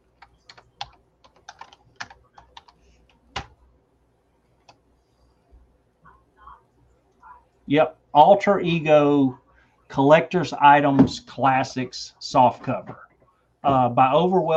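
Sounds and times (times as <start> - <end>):
typing on a computer keyboard: 0.2 - 3.6
speech: 7.7 - 13.0, 13.6 - 14.5.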